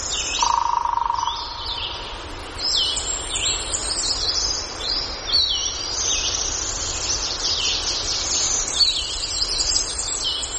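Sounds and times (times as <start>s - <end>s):
warblers and vireos singing: 0.0s - 10.5s.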